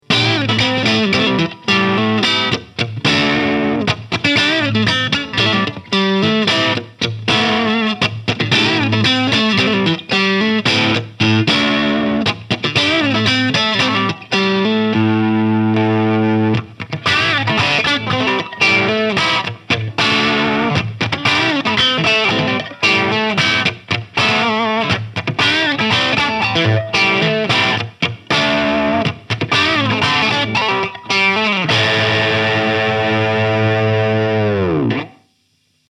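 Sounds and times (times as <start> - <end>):
Dean Exile Select 6 String Multiscale guitar crunch: 0.0 - 35.8.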